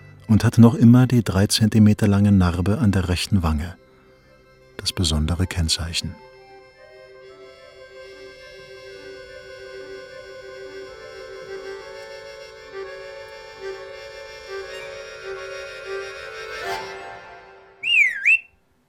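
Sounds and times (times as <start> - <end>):
speech: 0.3 - 3.8, 4.8 - 6.3
bird whistling: 14.5 - 16.8, 17.8 - 18.6
bird chirping in quick rising and falling bursts: 14.6 - 15.4, 17.8 - 18.6.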